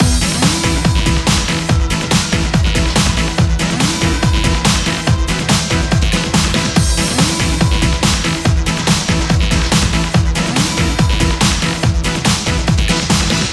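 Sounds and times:
music loop: 0.0 - 13.5.

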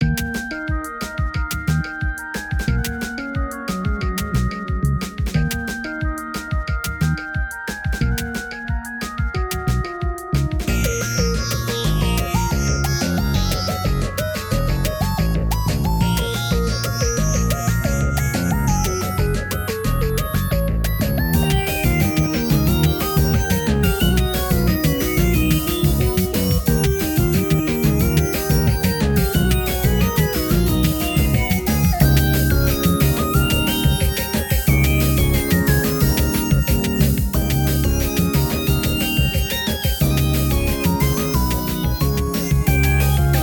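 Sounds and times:
drum beat: 0.1 - 43.4.

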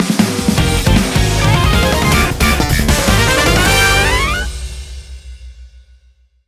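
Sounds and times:
game music general event: 0.6 - 4.9.

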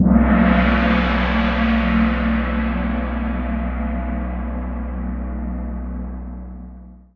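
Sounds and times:
high gong: 0.0 - 7.0.

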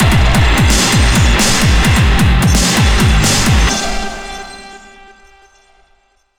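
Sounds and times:
action boss battle music: 0.0 - 4.2.

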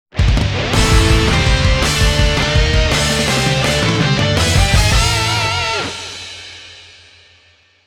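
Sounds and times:
victory theme music: 0.8 - 5.3.

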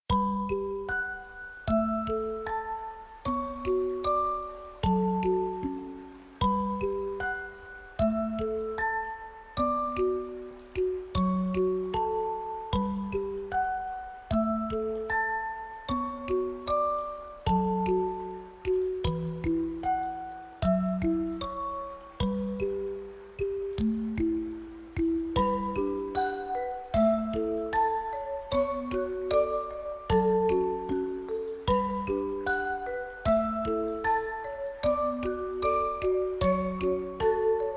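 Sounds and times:
relaxing forest ambience: 0.0 - 37.7.

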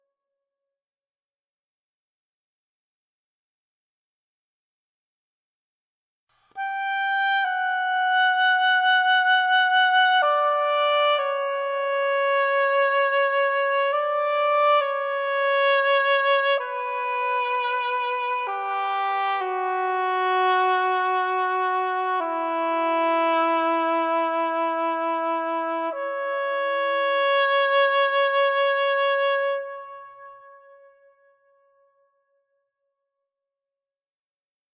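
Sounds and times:
oboe stem loop: 6.6 - 31.0.

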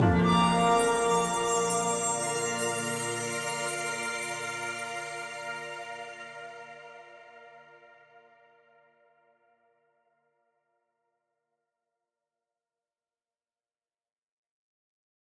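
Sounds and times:
ping jingle: 0.0 - 5.6.

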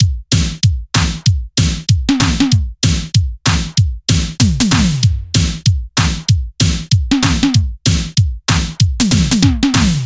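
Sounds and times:
drum loop: 0.0 - 10.0.

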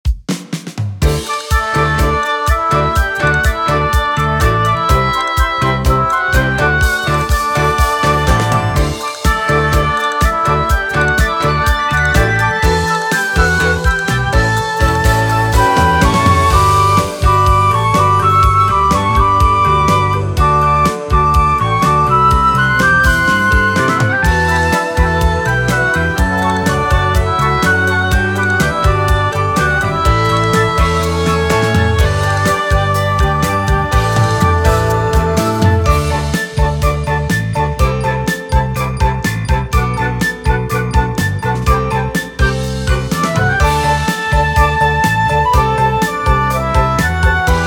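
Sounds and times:
music at an event: 0.0 - 47.6.

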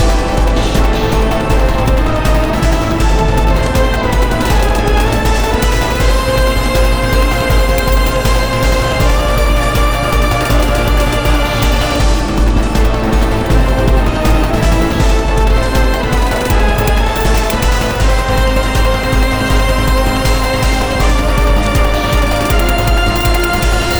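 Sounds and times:
fast steelworks machinery: 0.0 - 23.9.

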